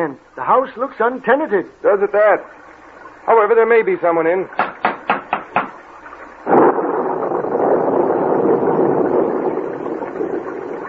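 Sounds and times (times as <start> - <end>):
speech: 0.0 - 2.6, 3.2 - 4.6
heavy rain: 5.0 - 10.8
thunder: 6.4 - 10.8.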